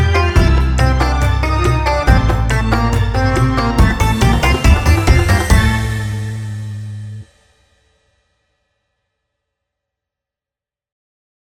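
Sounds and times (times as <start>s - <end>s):
orchestra: 0.0s - 7.2s.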